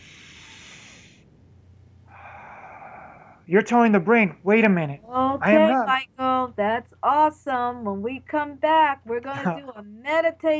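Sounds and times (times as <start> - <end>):
slow deliberate controlled breath: 0.0 - 1.2, 2.1 - 3.5
speech: 3.5 - 10.5
laughter: 3.6 - 6.0, 9.3 - 9.6.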